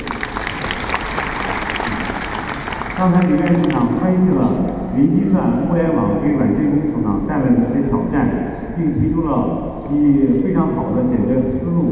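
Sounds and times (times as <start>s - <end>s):
audience applause: 0.0s - 3.9s
speech: 3.0s - 11.9s.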